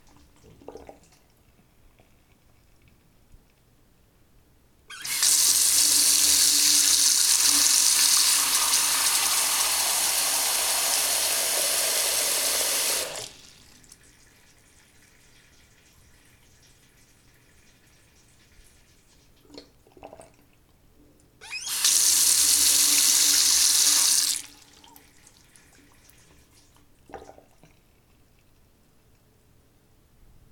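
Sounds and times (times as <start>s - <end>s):
bathroom faucet: 4.9s - 20.3s, 21.4s - 27.6s.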